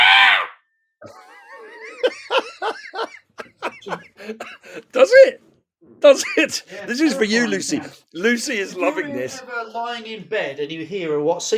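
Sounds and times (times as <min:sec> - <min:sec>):
barn owl screeching: 0:00.0 - 0:00.6
laughter: 0:01.0 - 0:05.3, 0:06.1 - 0:07.4
speech: 0:04.3 - 0:05.4, 0:06.0 - 0:11.5.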